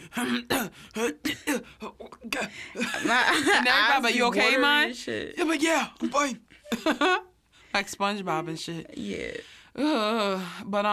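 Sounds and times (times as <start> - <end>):
person imitating a dry cough in a quiet office: 0.0 - 2.5
speech: 0.2 - 10.9.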